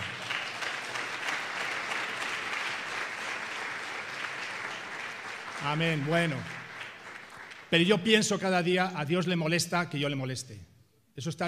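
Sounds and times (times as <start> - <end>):
audience applause: 0.0 - 7.8
speech: 5.6 - 6.6, 7.7 - 11.4.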